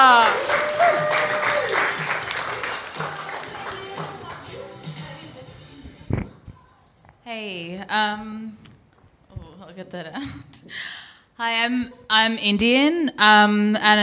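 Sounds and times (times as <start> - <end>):
audience applause for comedian: 0.0 - 4.5
speech: 7.3 - 8.4, 9.8 - 14.0.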